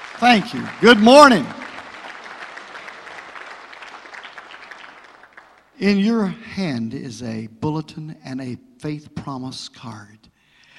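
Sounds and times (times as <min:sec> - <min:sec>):
audience applauding guests at a church service: 0:00.0 - 0:05.8
speech: 0:00.2 - 0:01.6, 0:05.8 - 0:10.3.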